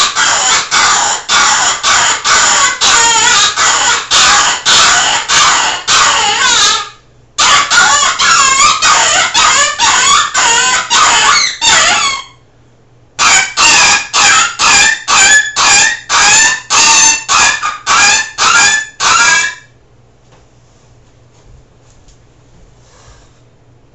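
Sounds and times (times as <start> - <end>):
rabbit squealing: 0.0 - 12.4, 13.2 - 19.7.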